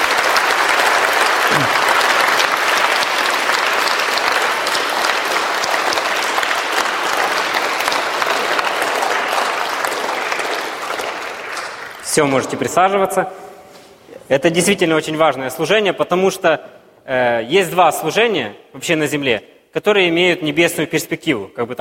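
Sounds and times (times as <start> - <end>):
audience applause: 0.0 - 12.4
speech: 1.5 - 1.8, 12.2 - 13.4, 14.3 - 21.8.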